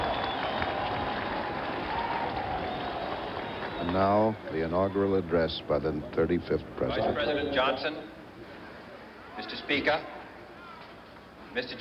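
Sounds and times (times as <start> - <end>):
large crowd cheering and applauding: 0.0 - 4.5
speech: 3.8 - 8.1, 9.4 - 10.1, 11.6 - 11.8.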